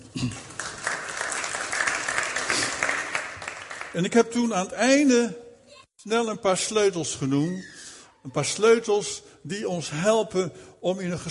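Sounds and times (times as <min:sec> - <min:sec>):
audience applause: 0:00.0 - 0:04.1
speech: 0:03.9 - 0:05.4, 0:06.0 - 0:11.2.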